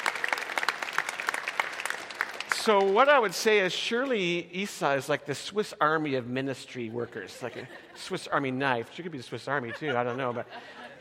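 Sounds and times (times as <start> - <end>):
church audience applause thanking a ministry worker: 0.0 - 3.5
speech: 2.6 - 10.9
laughter: 6.8 - 8.6, 9.4 - 10.9.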